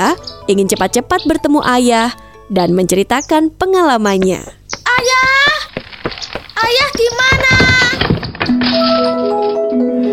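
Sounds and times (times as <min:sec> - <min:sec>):
speech: 0:00.0 - 0:04.6, 0:08.7 - 0:09.9
radio dropped on the floor: 0:04.2 - 0:08.8.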